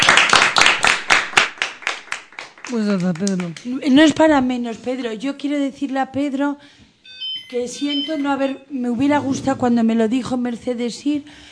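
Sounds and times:
applause: 0:00.0 - 0:03.8
speech: 0:02.7 - 0:06.9, 0:07.5 - 0:11.4.

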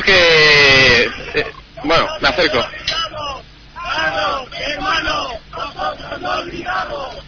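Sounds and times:
speech: 0:00.0 - 0:00.3, 0:01.4 - 0:02.8
protest crowd shouting slogans at a roundabout: 0:01.9 - 0:07.2.

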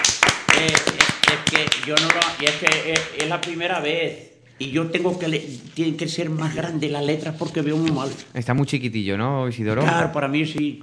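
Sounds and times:
audience applause: 0:00.0 - 0:03.5
speech: 0:00.6 - 0:10.8.

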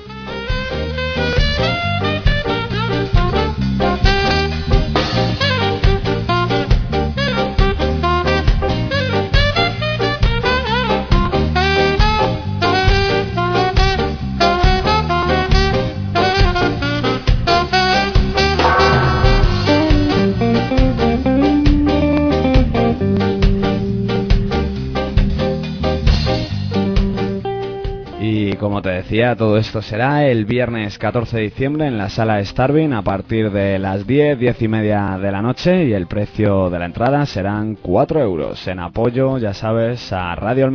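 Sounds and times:
tribute band playing ska: 0:00.0 - 0:28.2
speech: 0:29.2 - 0:40.7.

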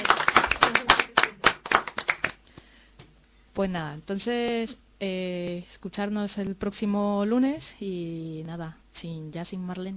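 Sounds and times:
applause, hand clapping: 0:00.0 - 0:02.4
speech: 0:03.6 - 0:09.9.

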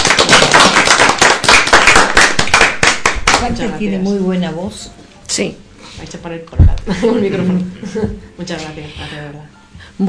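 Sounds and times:
audience applause after a singer's performance: 0:00.0 - 0:03.5
speech: 0:03.4 - 0:10.0.

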